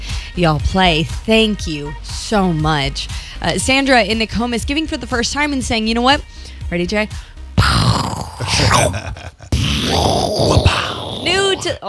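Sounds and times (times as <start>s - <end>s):
speech: 0.4s - 7.3s, 8.5s - 9.2s, 11.6s - 11.8s
person vocally imitating a pirate cannon: 7.6s - 11.8s.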